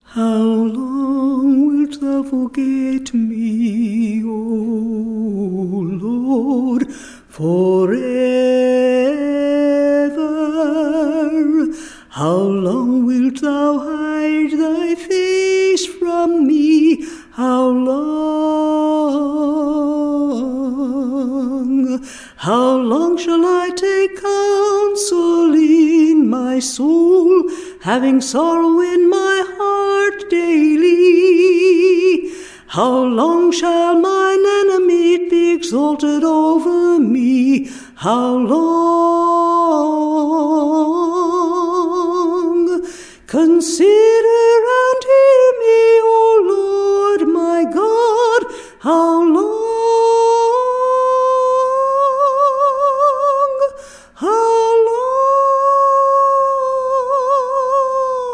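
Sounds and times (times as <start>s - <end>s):
a cappella scripture song: 0.0s - 58.3s.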